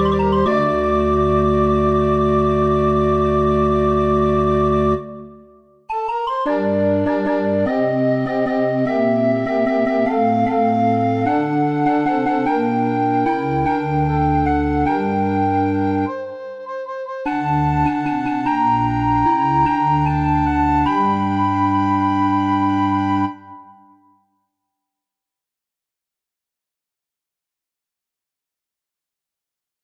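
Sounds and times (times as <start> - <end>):
organ: 0.0 - 5.3, 6.0 - 16.2, 17.3 - 23.5.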